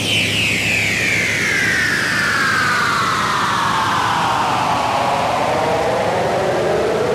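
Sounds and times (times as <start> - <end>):
clean noise: 0.0 - 7.0.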